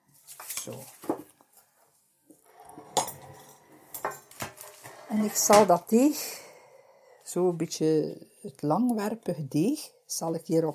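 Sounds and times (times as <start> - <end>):
speech: 0.7 - 1.0, 5.1 - 6.4, 7.3 - 10.7
ceramic oven dish scraping across a countertop: 2.4 - 5.6.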